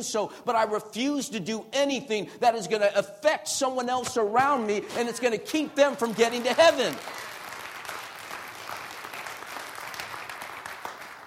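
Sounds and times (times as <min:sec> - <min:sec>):
speech: 0:00.0 - 0:07.3
audience applause: 0:06.0 - 0:11.2.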